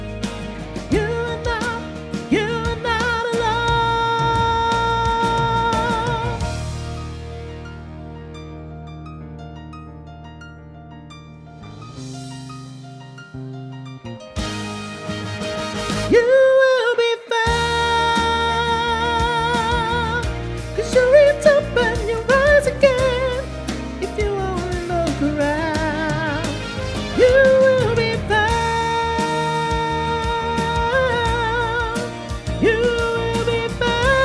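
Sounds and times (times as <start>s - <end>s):
soprano singing: 0.4s - 6.9s, 16.1s - 34.2s.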